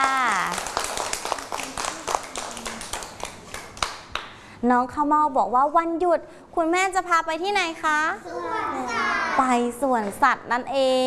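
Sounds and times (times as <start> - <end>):
small group clapping: 0.0 - 4.4
speech: 4.6 - 11.0.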